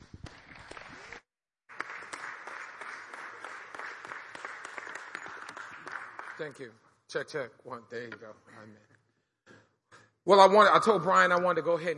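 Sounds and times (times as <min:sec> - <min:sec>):
audience applause welcoming a preacher: 0:00.3 - 0:06.6
speech: 0:06.4 - 0:08.9, 0:10.3 - 0:11.9.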